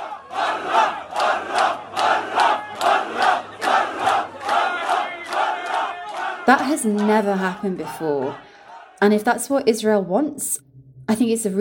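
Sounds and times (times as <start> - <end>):
angry crowd of young men booing: 0.0 - 9.0
speech: 6.5 - 11.5.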